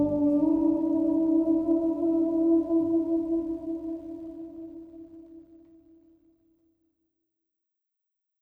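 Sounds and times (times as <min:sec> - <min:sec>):
pensive piano at 65.5 BPM: 0:00.0 - 0:05.0.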